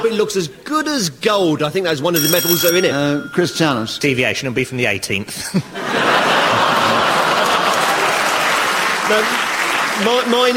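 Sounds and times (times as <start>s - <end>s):
speech: 0.0s - 6.3s, 9.1s - 9.4s, 10.0s - 10.5s
laughter: 5.4s - 8.6s
audience clapping: 6.8s - 10.5s.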